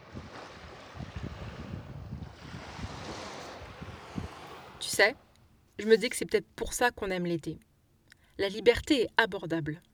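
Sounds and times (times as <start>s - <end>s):
wind gusts buffeting the microphone: 0.0s - 5.3s
sea waves washing onto the shore: 0.0s - 5.6s
speech: 5.0s - 5.2s, 5.8s - 7.7s, 8.4s - 9.9s.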